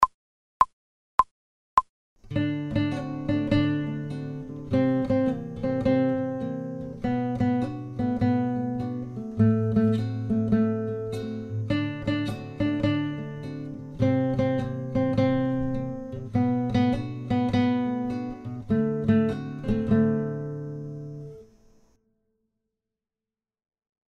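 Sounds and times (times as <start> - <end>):
fast folk tune on guitar: 2.3 - 21.3.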